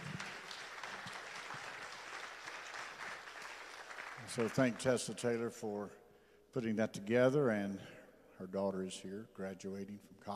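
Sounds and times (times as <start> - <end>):
hand clapping: 0.0 - 4.9
speech: 4.3 - 10.3.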